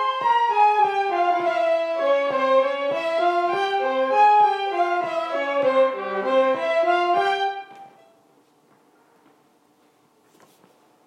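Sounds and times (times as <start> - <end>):
slow Macedonian wedding folk dance tune in C: 0.0 - 8.3.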